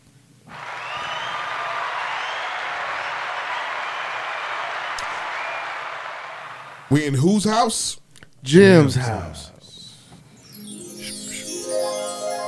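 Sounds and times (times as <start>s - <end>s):
hand clapping: 0.5s - 6.6s
speech: 6.9s - 9.5s.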